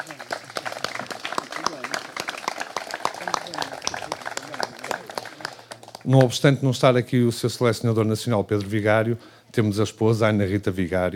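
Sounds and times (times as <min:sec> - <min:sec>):
audience applause: 0:00.0 - 0:06.4
speech: 0:03.5 - 0:04.0, 0:06.1 - 0:11.1.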